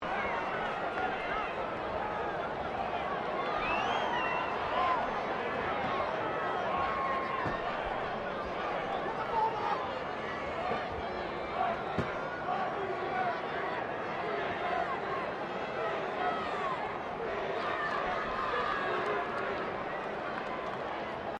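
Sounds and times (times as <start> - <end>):
15000-strong crowd ambience at a Rugby World Cup game: 0.0 - 21.3.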